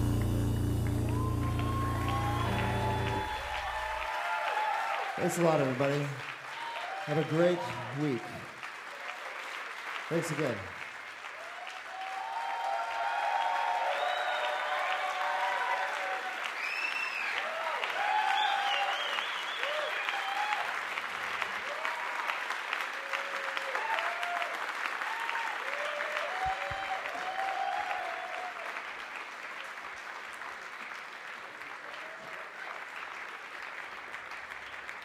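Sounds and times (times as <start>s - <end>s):
crowd calling out requests at the 930 Club: 0.0s - 5.0s
concert crowd applauding at the 930 Club: 0.0s - 35.0s
speech: 5.2s - 6.3s, 7.1s - 8.4s, 10.1s - 10.8s.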